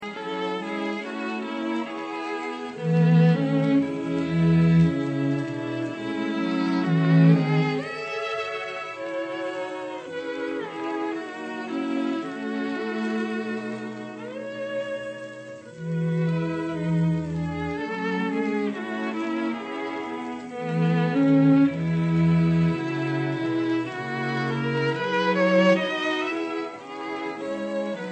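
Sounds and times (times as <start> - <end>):
string quartet playing: 0.0 - 28.1.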